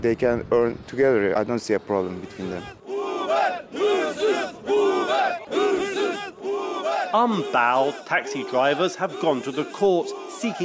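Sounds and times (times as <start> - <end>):
speech: 0.0 - 2.8, 7.1 - 10.6
crowd of protesters chanting: 2.2 - 10.6.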